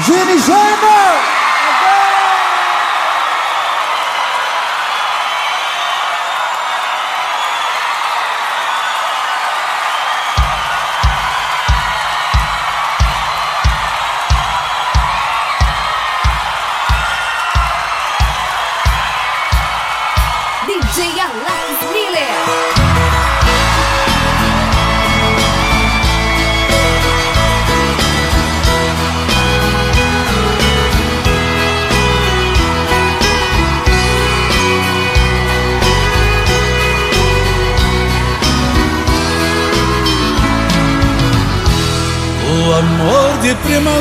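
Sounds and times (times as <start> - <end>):
crowd applauding and cheering: 0.0 - 44.0
speech: 0.2 - 2.0, 43.6 - 44.0
crowd whoops: 1.0 - 21.6, 22.2 - 27.7
music: 9.5 - 44.0.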